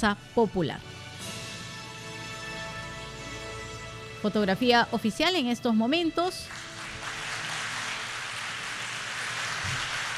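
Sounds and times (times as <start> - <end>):
speech: 0.0 - 1.0, 4.2 - 6.6
applause from senators in chamber: 6.3 - 10.1.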